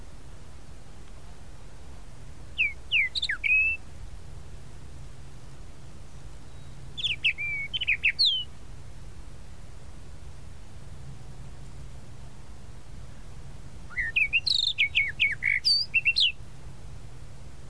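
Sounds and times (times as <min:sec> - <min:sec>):
tropical mockingbird song: 0:02.6 - 0:03.8, 0:06.1 - 0:08.5, 0:13.9 - 0:16.4.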